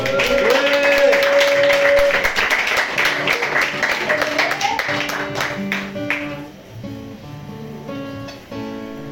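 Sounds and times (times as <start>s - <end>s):
audience applause: 0.0s - 6.5s.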